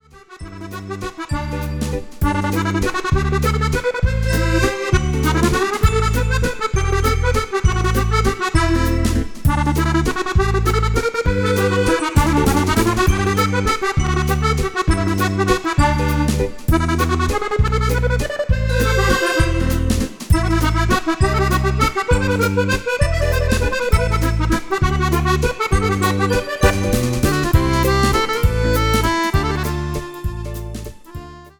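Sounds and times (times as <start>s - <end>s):
accordion waltz: 0.0s - 31.5s.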